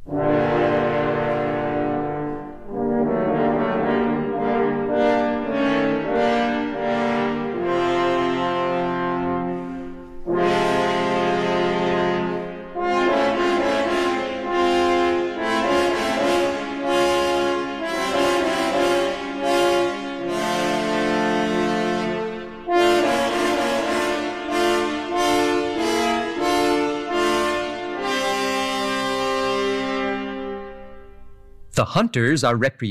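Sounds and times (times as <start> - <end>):
three French horns playing: 0.0 - 31.3
speech: 31.8 - 32.8.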